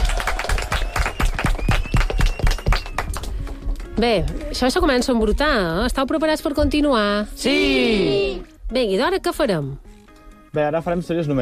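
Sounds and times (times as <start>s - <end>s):
applause: 0.0s - 3.9s
speech: 4.0s - 9.9s, 10.5s - 11.3s.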